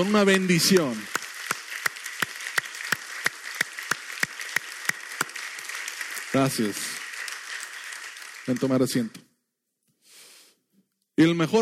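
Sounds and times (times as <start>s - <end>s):
speech: 0.0s - 1.1s, 6.3s - 7.0s, 8.5s - 9.3s, 11.2s - 11.6s
audience applause: 0.0s - 9.2s
sharp evenly spaced claps: 0.0s - 9.2s.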